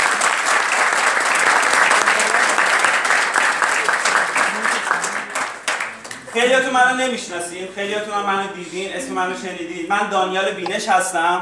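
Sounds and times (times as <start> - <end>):
audience applause at a live talk: 0.0 - 6.3
speech: 6.4 - 11.3.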